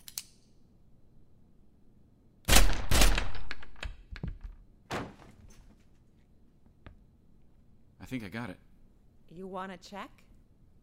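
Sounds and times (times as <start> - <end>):
gunshots fired through a door: 2.5 - 3.8
speech: 8.1 - 8.7, 9.3 - 10.2.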